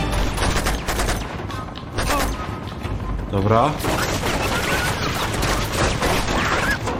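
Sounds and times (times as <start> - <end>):
bursts of gunfire: 0.2 - 2.5, 3.8 - 6.8
speech: 3.3 - 4.1.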